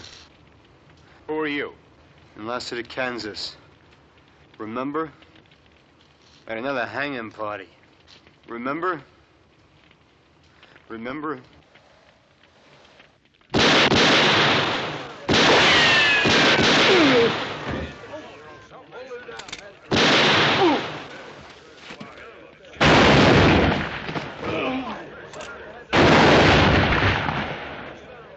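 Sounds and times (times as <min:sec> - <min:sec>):
rumbling: 0:00.0 - 0:28.3
speech: 0:01.3 - 0:03.6, 0:04.6 - 0:05.2, 0:06.5 - 0:07.8, 0:08.5 - 0:09.1, 0:10.9 - 0:11.6
gunfire in a Western standoff at a hanging party: 0:13.5 - 0:18.1, 0:19.9 - 0:21.4, 0:22.8 - 0:24.4, 0:25.9 - 0:28.0.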